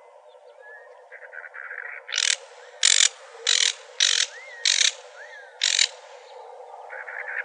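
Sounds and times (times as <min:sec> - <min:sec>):
cactus wren raspy chattering: 0:02.1 - 0:06.3.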